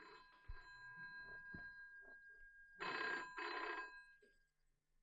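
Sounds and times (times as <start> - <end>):
telephone bell ringing: 0.0 - 4.5.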